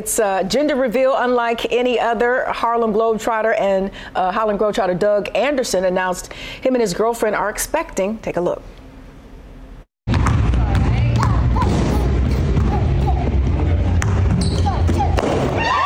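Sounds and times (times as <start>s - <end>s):
speech: 0.0s - 8.8s
basketball slam dunk into the net: 10.1s - 12.8s, 14.0s - 15.7s.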